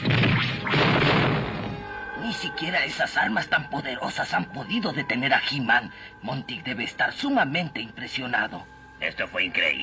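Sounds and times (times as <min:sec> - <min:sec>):
cartoon chunk of ice breaking off a glacier: 0:00.1 - 0:01.7
speech: 0:02.4 - 0:09.8.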